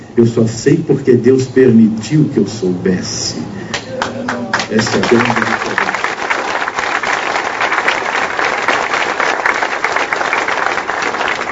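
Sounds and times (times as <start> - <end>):
speech: 0.2 - 3.6, 4.3 - 5.6
audience applause: 4.0 - 11.5.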